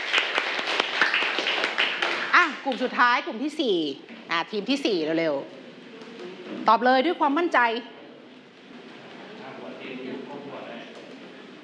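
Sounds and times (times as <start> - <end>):
classroom students clapping for their classmates: 0.0 - 2.9
speech: 2.4 - 5.6, 6.5 - 7.9.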